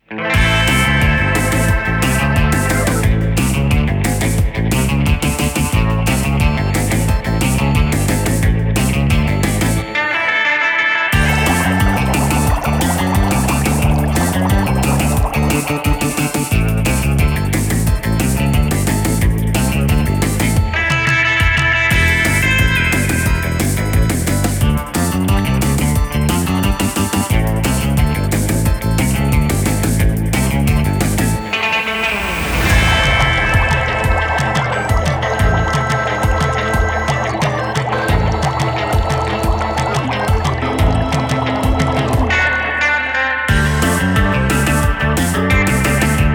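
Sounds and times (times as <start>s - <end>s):
music loop: 0.4s - 10.1s, 11.2s - 46.3s.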